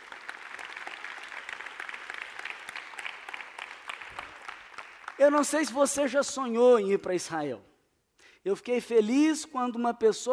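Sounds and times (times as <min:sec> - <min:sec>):
audience applause: 0:00.0 - 0:05.5
speech: 0:05.2 - 0:07.7, 0:08.4 - 0:10.3.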